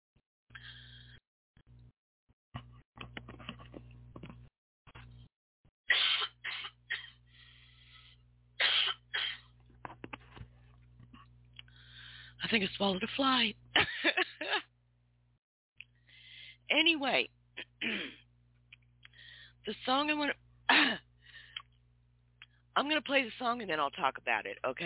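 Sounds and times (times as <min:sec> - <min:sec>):
person coughing: 0:05.9 - 0:07.2, 0:08.6 - 0:09.5, 0:17.6 - 0:18.2, 0:20.7 - 0:21.0
speech: 0:12.5 - 0:13.9, 0:17.0 - 0:17.4, 0:19.7 - 0:20.4, 0:22.8 - 0:24.8
person clearing their throat: 0:17.6 - 0:18.2.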